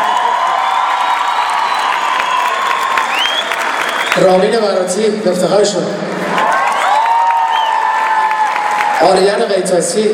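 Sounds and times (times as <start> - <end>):
audience applauding and cheering for a music group: 0.0 - 4.7, 6.1 - 9.4
whistle: 1.2 - 4.3, 7.5 - 7.8
speech: 4.2 - 6.6, 9.0 - 10.1.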